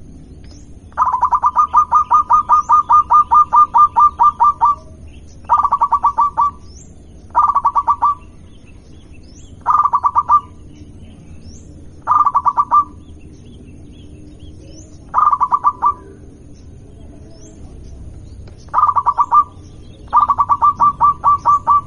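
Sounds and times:
zebra dove cooing song: 0.9s - 6.7s, 7.3s - 8.4s, 9.6s - 10.7s, 12.0s - 13.0s, 14.6s - 17.8s, 18.7s - 21.8s.

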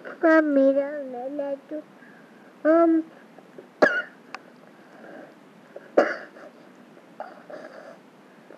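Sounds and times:
speech: 0.4s - 2.0s
person coughing: 3.8s - 4.2s, 6.0s - 6.6s.

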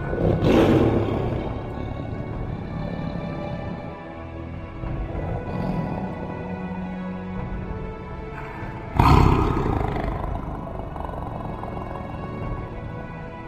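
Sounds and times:
beast roaring angrily: 0.1s - 3.9s, 4.9s - 7.1s, 8.4s - 13.3s.

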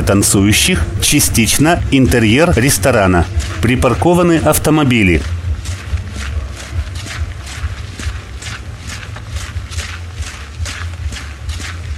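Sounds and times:
brisk footsteps of a man walking toward restaurant entrance doors: 0.0s - 11.9s
continuous low rumbling hum: 0.0s - 11.9s
speech: 0.1s - 5.4s.

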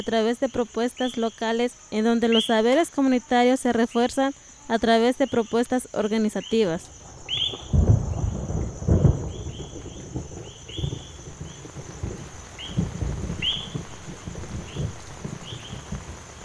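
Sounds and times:
speech: 0.0s - 7.7s
heavy rain falling: 6.9s - 16.4s.

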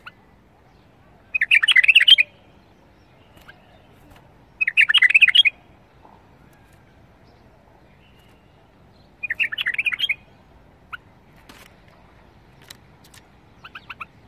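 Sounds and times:
bulbul singing: 0.0s - 14.2s.

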